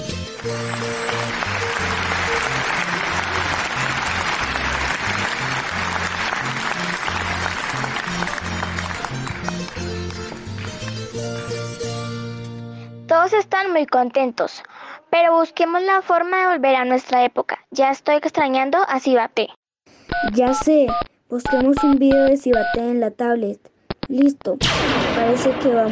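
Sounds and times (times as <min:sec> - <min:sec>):
crowd applause: 0:00.2 - 0:11.2
speech: 0:00.4 - 0:01.0, 0:13.7 - 0:25.9.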